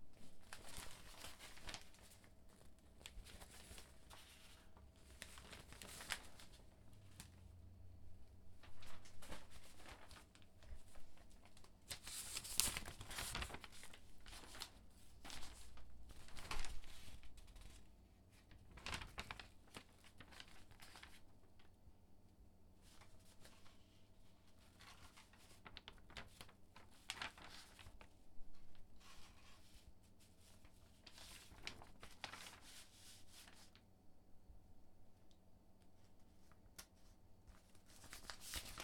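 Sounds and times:
newspaper handling: 0.1 - 7.5, 8.5 - 17.8, 18.5 - 21.4, 24.5 - 28.1, 28.7 - 33.8, 36.5 - 38.8.

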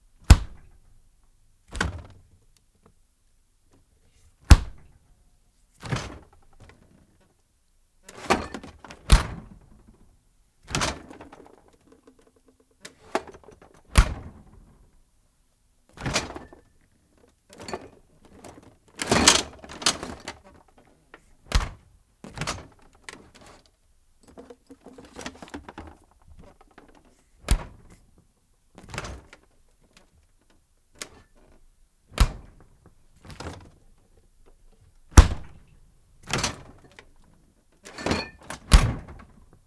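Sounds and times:
refrigerator door opening and closing: 1.7 - 2.3, 4.5 - 5.0, 5.8 - 7.0, 8.1 - 15.0, 15.9 - 23.7, 24.3 - 28.2, 28.8 - 30.1, 31.0 - 34.0, 35.1 - 37.2, 37.8 - 39.5.

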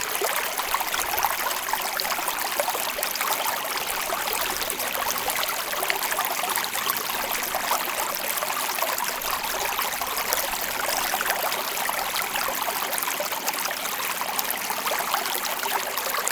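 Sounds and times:
water streaming: 0.0 - 16.3.

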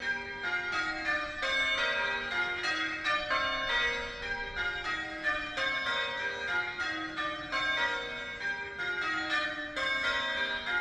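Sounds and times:
church bells pealing: 0.0 - 10.8.

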